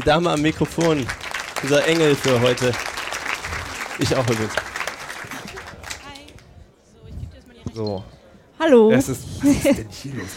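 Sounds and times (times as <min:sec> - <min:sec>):
speech: 0:00.0 - 0:02.9, 0:04.0 - 0:04.7, 0:07.8 - 0:10.3
audience applause: 0:00.0 - 0:06.3
laughter: 0:09.4 - 0:10.3.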